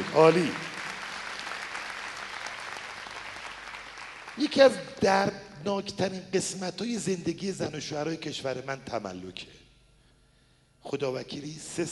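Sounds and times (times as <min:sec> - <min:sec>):
audience applause at a seminar: 0:00.0 - 0:04.8
speech: 0:00.2 - 0:00.6, 0:04.4 - 0:09.6, 0:10.8 - 0:11.8.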